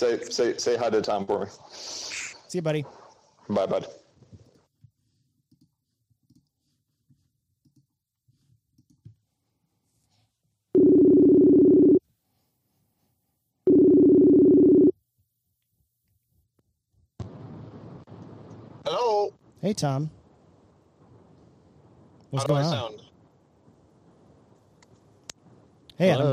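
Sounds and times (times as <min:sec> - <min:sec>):
speech: 0:00.0 - 0:04.0, 0:18.9 - 0:20.2, 0:22.3 - 0:23.0, 0:26.0 - 0:26.3
telephone ringback tones during a phone call: 0:10.8 - 0:12.0, 0:13.7 - 0:14.9.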